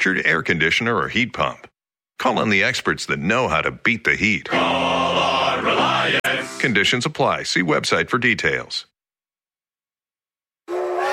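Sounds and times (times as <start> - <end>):
speech: 0.0 - 8.9
steam train whistle: 10.7 - 11.1.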